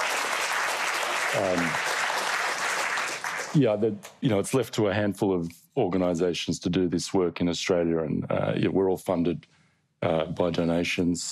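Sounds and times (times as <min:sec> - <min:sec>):
audience applause: 0:00.0 - 0:03.7
speech: 0:01.3 - 0:01.9, 0:03.5 - 0:11.3.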